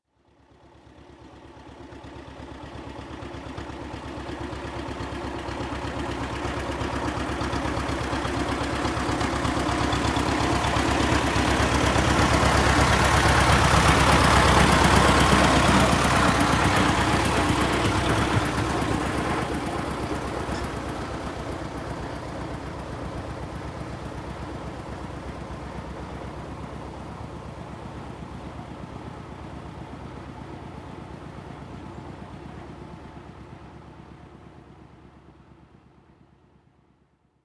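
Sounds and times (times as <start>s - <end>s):
tractor engine: 0.6s - 36.3s.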